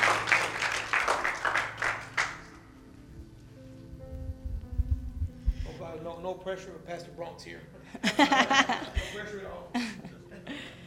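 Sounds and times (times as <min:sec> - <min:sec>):
audience applause: 0:00.0 - 0:02.6
speech: 0:06.2 - 0:09.8
laughter: 0:08.0 - 0:10.8.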